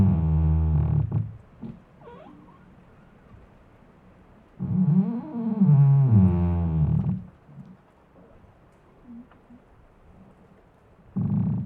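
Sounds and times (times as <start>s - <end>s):
squeaking tree creaking and groaning: 0.0s - 3.2s, 4.6s - 7.3s.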